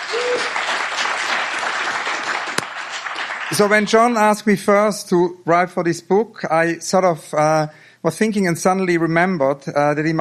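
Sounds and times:
audience applause: 0.0s - 3.9s
speech: 3.5s - 10.1s.

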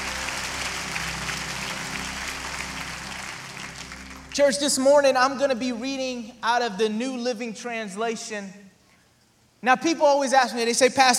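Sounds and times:
church audience applause: 0.0s - 5.6s
speech: 4.4s - 8.6s, 9.6s - 11.1s.

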